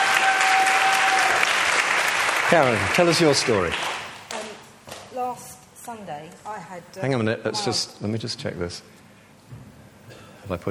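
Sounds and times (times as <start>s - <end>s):
clapping: 0.0s - 4.5s
speech: 2.5s - 3.9s, 5.3s - 9.0s, 10.5s - 10.7s.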